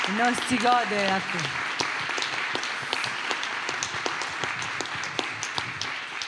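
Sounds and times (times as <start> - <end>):
audience applause: 0.0 - 6.2
speech: 0.1 - 1.6.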